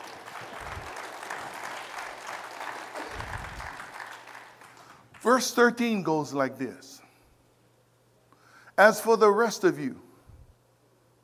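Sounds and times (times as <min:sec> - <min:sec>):
audience applause: 0:00.0 - 0:05.2
speech: 0:05.2 - 0:07.0, 0:08.8 - 0:10.0.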